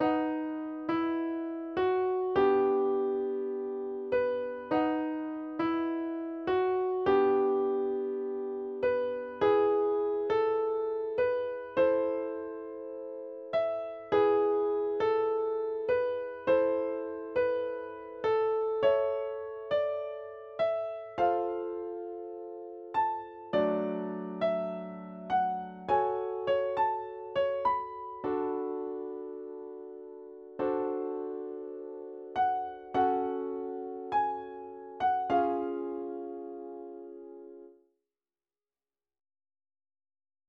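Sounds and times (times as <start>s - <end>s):
instrumental music: 0.0s - 37.8s.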